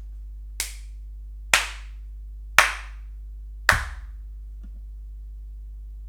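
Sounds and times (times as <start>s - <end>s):
clapping: 0.6s - 0.9s, 1.6s - 2.0s, 2.6s - 3.0s, 3.7s - 4.1s.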